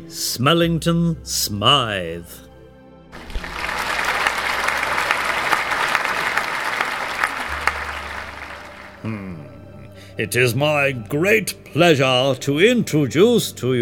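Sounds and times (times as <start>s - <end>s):
speech: 0.1s - 2.4s, 9.0s - 9.4s, 10.2s - 13.8s
audience clapping to welcome a star speaker: 3.1s - 9.2s.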